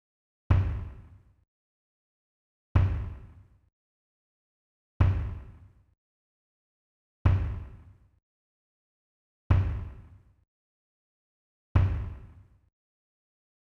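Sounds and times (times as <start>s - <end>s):
kick drum: 0.5s - 1.1s, 2.8s - 3.4s, 5.0s - 5.6s, 7.3s - 7.8s, 9.5s - 10.1s, 11.8s - 12.4s.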